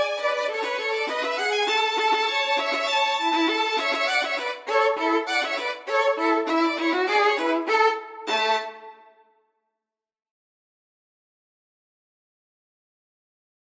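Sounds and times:
violin duet: 0.0s - 9.2s.

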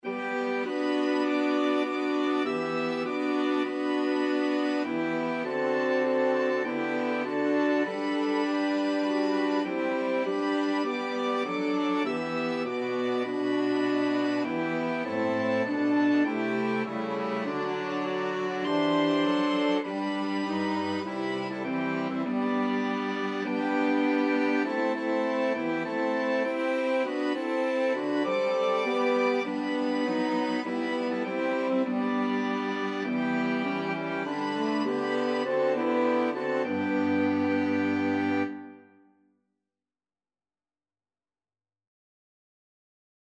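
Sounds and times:
flexible mixed ensemble of 4 players: 0.0s - 38.9s.

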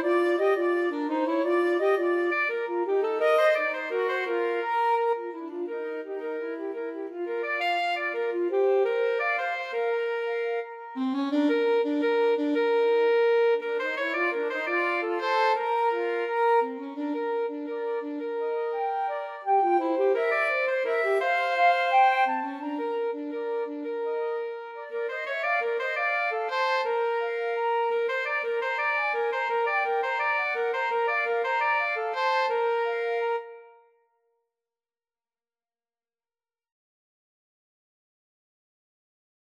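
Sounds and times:
flute and alto sax duet: 0.0s - 33.9s.

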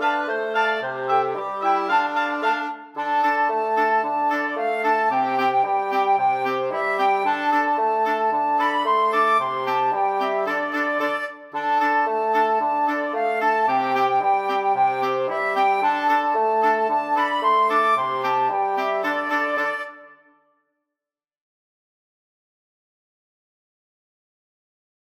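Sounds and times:
flexible mixed ensemble of 4 players: 0.0s - 20.0s.

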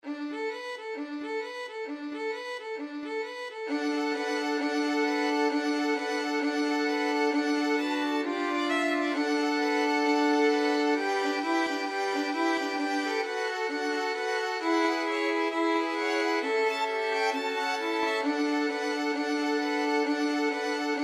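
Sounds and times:
strings playing a Christmas boogie: 0.1s - 21.0s.

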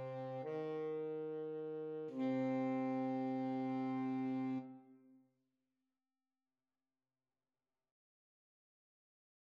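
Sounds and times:
2 alto and tenor saxophones playing: 0.0s - 4.9s.

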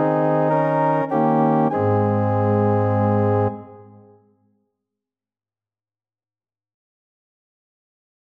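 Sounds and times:
organ: 0.0s - 3.8s.

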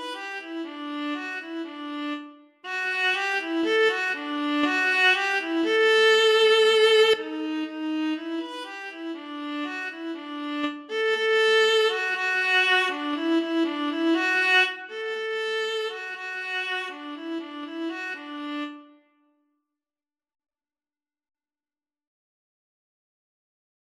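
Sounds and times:
viola: 0.0s - 19.0s
cello: 0.9s - 18.8s.

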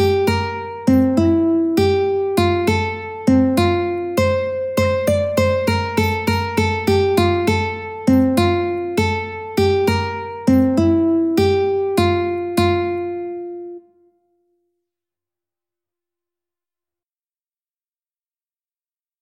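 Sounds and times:
ukulele playing: 0.0s - 13.8s.

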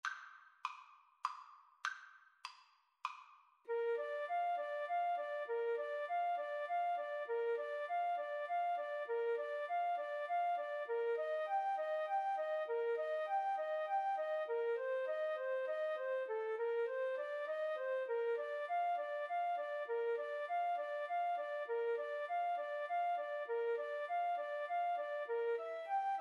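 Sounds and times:
flute duet: 3.7s - 26.1s.

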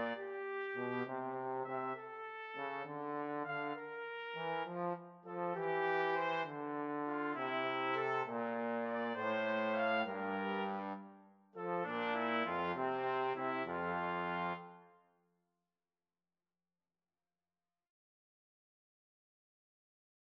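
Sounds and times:
trombone: 0.0s - 11.0s, 11.6s - 14.8s
trumpets: 0.0s - 14.8s
clarinet: 0.0s - 15.0s.

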